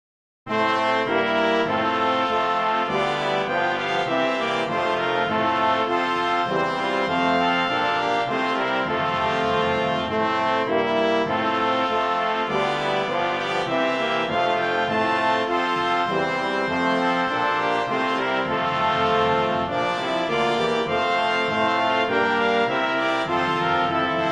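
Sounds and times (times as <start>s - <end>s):
brass playing a hymn: 0.5s - 24.3s.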